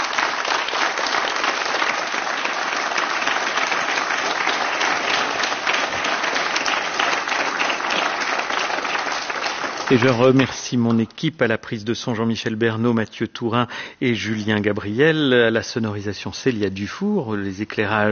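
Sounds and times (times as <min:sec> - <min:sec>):
concert audience applauding: 0:00.0 - 0:11.1
speech: 0:09.9 - 0:18.1.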